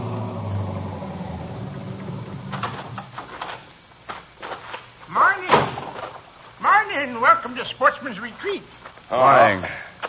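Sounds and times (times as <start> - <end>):
police car pulling up: 0.0 - 3.5
speech: 7.0 - 9.8.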